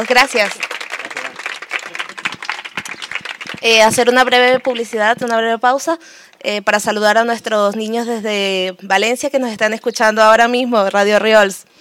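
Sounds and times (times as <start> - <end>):
speech: 0.0 - 0.7, 3.6 - 11.7
audience applause: 0.0 - 5.0.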